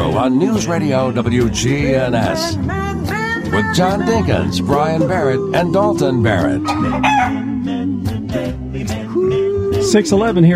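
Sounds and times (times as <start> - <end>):
speech: 0.1 - 9.0, 9.8 - 10.5
rooster crow sound effect: 6.6 - 7.7.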